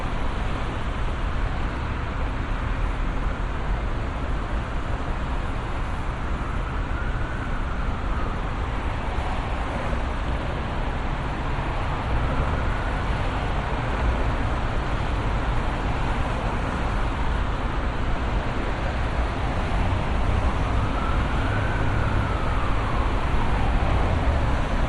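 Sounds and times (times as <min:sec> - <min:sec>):
busy city vehicle traffic in Brisbane North Quay: 0:00.0 - 0:24.8
distant siren in Brisbane North Quay: 0:05.8 - 0:10.4, 0:11.8 - 0:14.4, 0:18.8 - 0:24.8.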